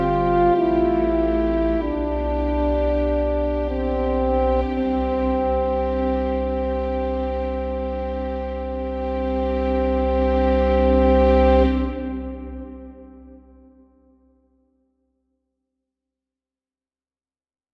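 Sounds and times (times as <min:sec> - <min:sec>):
French horn on a digital instrument: 0:00.0 - 0:14.2.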